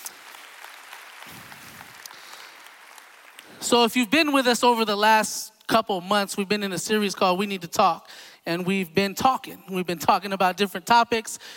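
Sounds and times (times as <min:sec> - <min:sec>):
audience clapping: 0:00.0 - 0:04.0
speech: 0:03.6 - 0:11.5.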